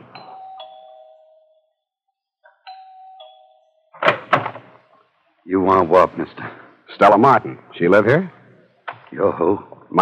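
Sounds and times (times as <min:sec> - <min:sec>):
doorbell ringing: 0:00.0 - 0:01.7, 0:02.6 - 0:04.0
speech: 0:05.5 - 0:08.4, 0:09.1 - 0:10.0.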